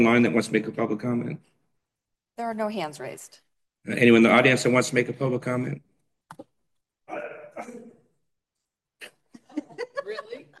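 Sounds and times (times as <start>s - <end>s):
speech: 0.0s - 1.6s, 2.4s - 6.5s
throat clearing during a board meeting: 7.1s - 8.1s
laughter: 9.1s - 10.5s.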